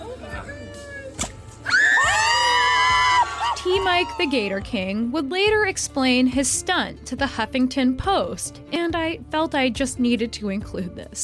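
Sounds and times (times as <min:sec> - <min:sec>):
sharp pop: 0:01.2 - 0:01.4
crowd cheering and screaming: 0:01.6 - 0:04.5
speech: 0:04.0 - 0:11.2.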